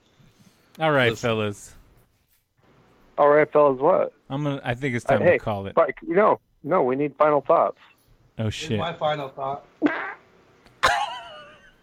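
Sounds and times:
speech: 0.8s - 1.8s, 3.2s - 10.0s
fart: 9.8s - 10.3s.

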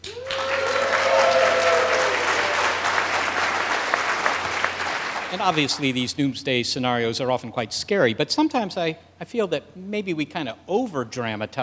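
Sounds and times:
person whooping: 0.0s - 2.9s
live audience applause at a science show recording: 0.0s - 6.0s
speech: 5.4s - 11.6s.

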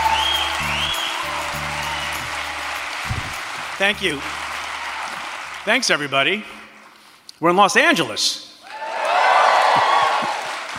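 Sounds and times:
clapping: 0.0s - 5.7s, 9.5s - 10.7s
live audience cheering and whooping: 0.0s - 6.0s, 8.6s - 10.7s
low thumps: 3.0s - 3.8s
speech: 3.8s - 4.4s, 5.6s - 6.6s, 7.4s - 8.4s.

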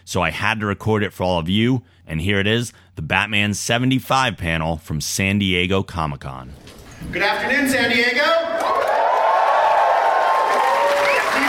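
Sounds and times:
speech: 0.1s - 8.9s
convention audience cheering and applauding: 8.5s - 11.4s.

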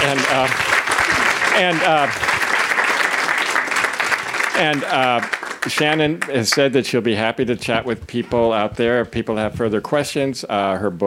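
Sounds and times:
audience applause: 0.0s - 6.7s
speech: 0.3s - 0.7s, 1.6s - 2.3s, 4.6s - 11.0s.

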